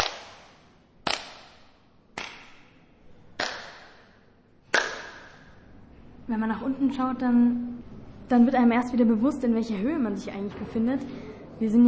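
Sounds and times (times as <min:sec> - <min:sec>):
single hand clap echoing under dome: 0:00.0 - 0:05.6
speech: 0:06.3 - 0:07.7, 0:08.3 - 0:11.8.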